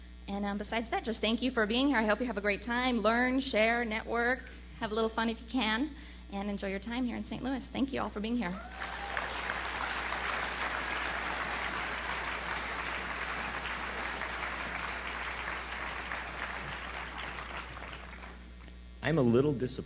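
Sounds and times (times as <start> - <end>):
speech: 0.3 - 8.9, 19.1 - 19.8
large audience round of applause: 8.6 - 18.4.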